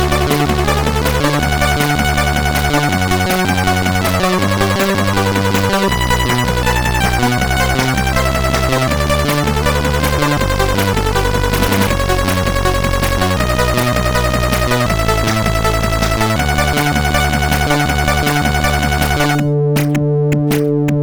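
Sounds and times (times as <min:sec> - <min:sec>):
song on SID CSG8580R5 chip: 0:00.0 - 0:21.0.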